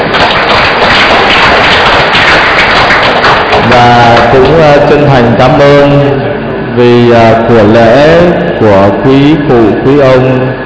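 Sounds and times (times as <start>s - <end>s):
audience applause: 0.0s - 4.8s
speech: 3.8s - 6.2s, 6.8s - 10.6s.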